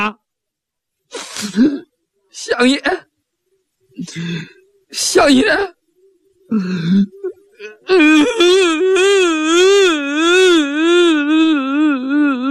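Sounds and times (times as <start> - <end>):
speech: 0.0 - 0.2, 1.1 - 3.1, 4.0 - 5.8, 6.5 - 11.4
person imitating crying like a hungry water buffalo: 6.5 - 12.5.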